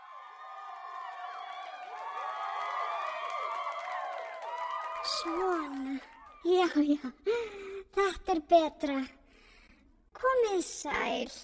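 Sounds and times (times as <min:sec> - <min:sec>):
cheering crowd sound effect played from a computer: 0:00.0 - 0:06.4
speech: 0:05.0 - 0:09.2, 0:10.2 - 0:11.4.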